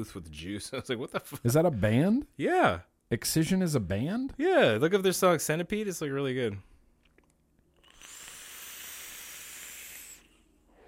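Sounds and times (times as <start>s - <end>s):
speech: 0.0s - 6.7s
RDA for vaping V2 atomizer whistling: 7.8s - 10.4s.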